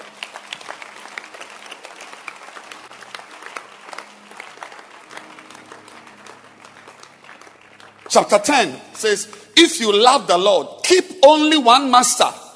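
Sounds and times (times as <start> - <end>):
audience applause: 0.0 - 10.1
speech: 8.1 - 12.4.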